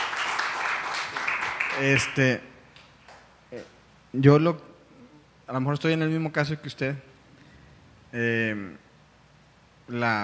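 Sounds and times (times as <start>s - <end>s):
audience applause: 0.0s - 2.3s
speech: 1.8s - 2.5s, 3.5s - 4.7s, 5.5s - 7.1s, 8.1s - 8.8s, 9.9s - 10.2s.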